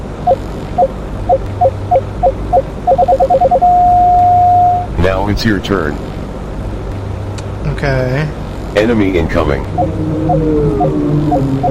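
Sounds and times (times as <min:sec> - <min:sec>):
low hum: 0:00.0 - 0:11.6
speech: 0:00.2 - 0:00.9, 0:05.3 - 0:06.1, 0:07.8 - 0:11.6
short paired electronic beeps signaling time to shoot: 0:00.2 - 0:04.9, 0:09.7 - 0:11.6.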